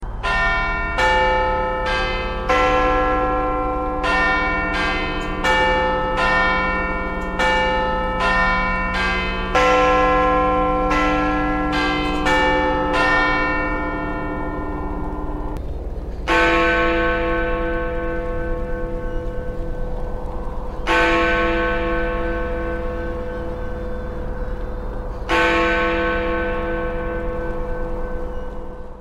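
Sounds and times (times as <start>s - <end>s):
big church bell: 0.0s - 29.0s.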